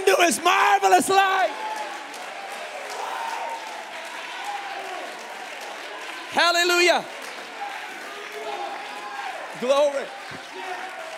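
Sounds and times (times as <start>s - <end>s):
audience clapping: 0.0s - 11.1s
speech: 0.2s - 1.6s, 6.4s - 7.2s, 9.6s - 10.4s.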